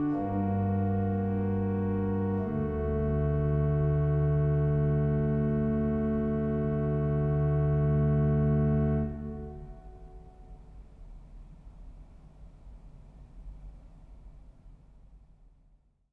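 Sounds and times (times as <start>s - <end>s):
organist playing a fughetta: 0.0s - 10.4s.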